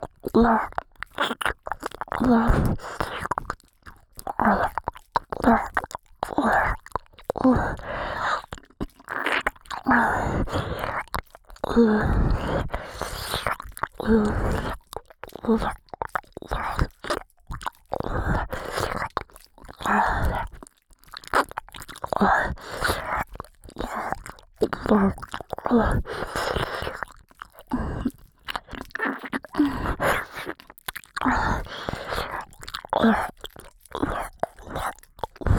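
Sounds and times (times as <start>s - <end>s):
ASMR ear licking sounds in the right channel: 0.0s - 35.5s.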